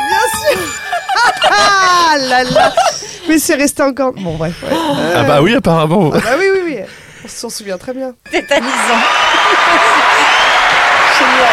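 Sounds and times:
laughter: 0.0 - 3.2, 8.5 - 11.5
speech: 2.2 - 10.0, 11.4 - 11.5
applause and cheering: 8.6 - 11.5.

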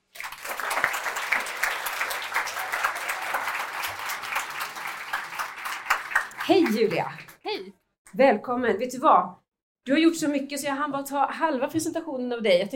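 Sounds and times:
audience applause: 0.0 - 7.4
speech: 6.5 - 12.7.

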